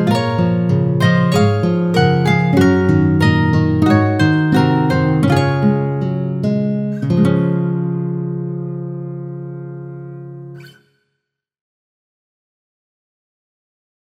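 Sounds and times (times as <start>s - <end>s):
guitar: 0.0s - 11.2s.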